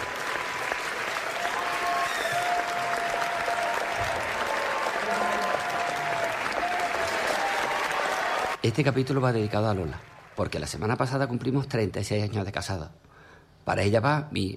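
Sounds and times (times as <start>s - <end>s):
faint cheers and whistles: 0.0s - 8.6s
large crowd standing ovation applause: 0.0s - 10.9s
speech: 8.6s - 13.0s, 13.6s - 14.5s.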